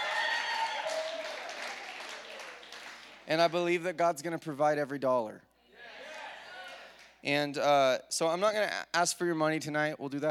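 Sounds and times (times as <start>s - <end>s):
audience cheering and applauding: 0.0s - 3.2s
speech: 3.3s - 5.5s, 7.2s - 10.3s.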